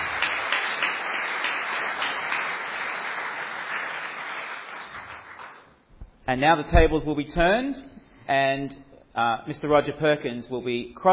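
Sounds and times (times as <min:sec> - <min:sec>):
audience applause: 0:00.0 - 0:05.7
speech: 0:06.3 - 0:11.1.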